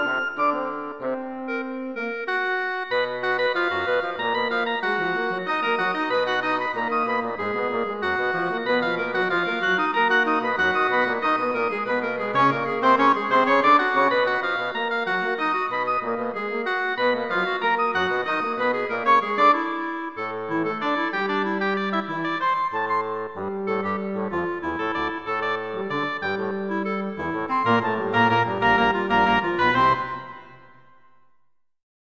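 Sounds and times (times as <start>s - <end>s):
woodwind quintet playing variations: 0.0s - 31.1s.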